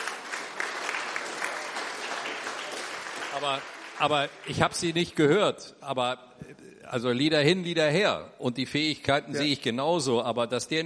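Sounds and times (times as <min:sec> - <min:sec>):
audience applause: 0:00.0 - 0:05.0
speech: 0:03.4 - 0:10.8.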